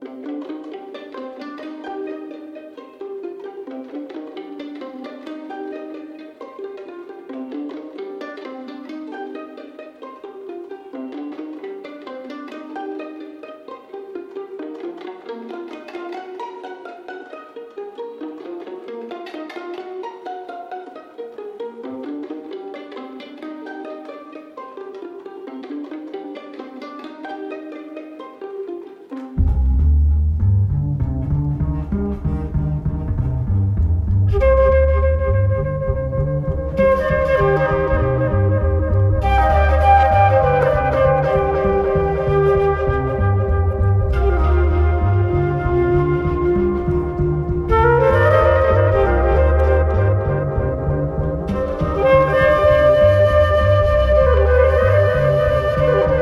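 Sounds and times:
pizzicato strings: 0:00.0 - 0:56.1
walking bass: 0:29.4 - 0:56.1.

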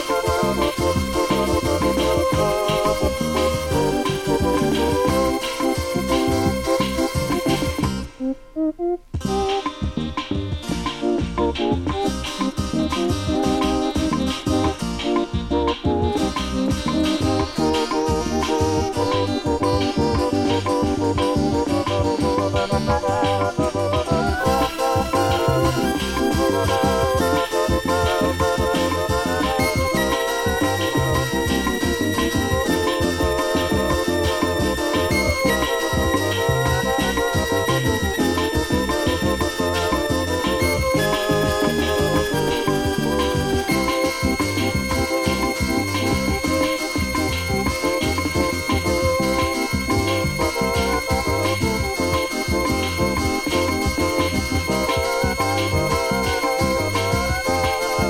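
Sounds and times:
synthesizer bossa nova: 0:00.0 - 0:58.0.

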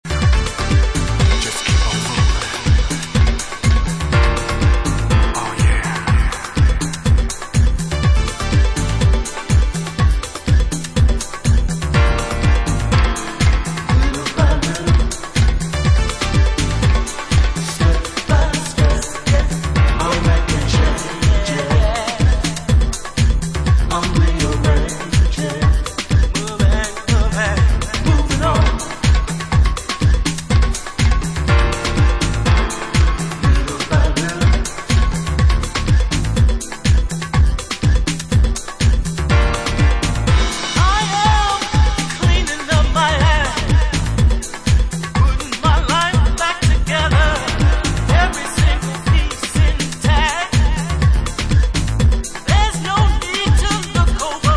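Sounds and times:
vocals: 0:00.0 - 0:54.5.

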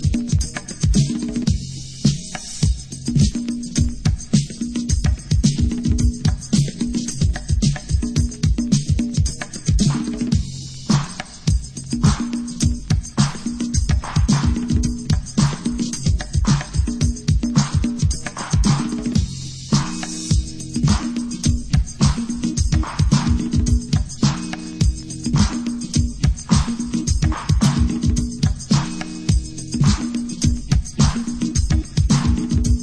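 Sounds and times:
classic b beat instrumental: 0:00.0 - 0:32.8.

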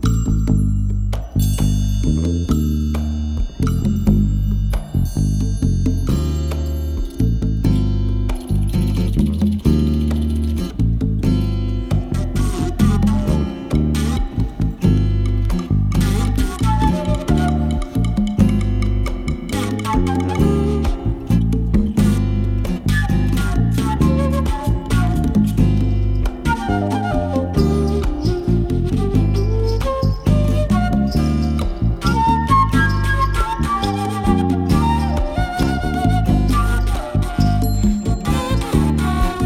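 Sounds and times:
flute sequence: 0:00.8 - 0:39.4.

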